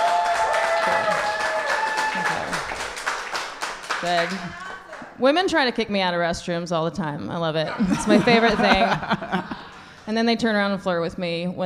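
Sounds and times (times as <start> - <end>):
voices and whoops: 0.0 - 2.7
audience clapping: 0.0 - 5.2
speech: 4.0 - 4.6, 5.2 - 9.5, 10.1 - 11.6
laughter: 4.2 - 5.2, 7.7 - 10.0.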